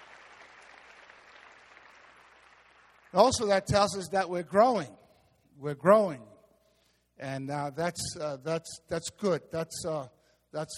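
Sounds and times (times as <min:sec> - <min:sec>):
audience clapping: 0:00.0 - 0:03.2
speech: 0:03.1 - 0:05.0, 0:05.6 - 0:06.3, 0:07.2 - 0:10.7.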